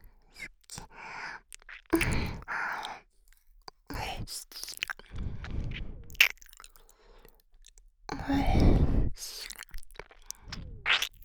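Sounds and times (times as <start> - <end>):
ear licking on the right side: 1.5 - 2.6, 4.4 - 7.0, 8.1 - 11.2.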